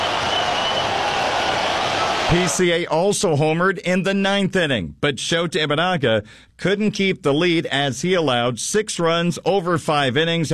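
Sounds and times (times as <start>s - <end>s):
baseball stadium crowd cheering: 0.0s - 2.9s
speech: 2.3s - 10.5s.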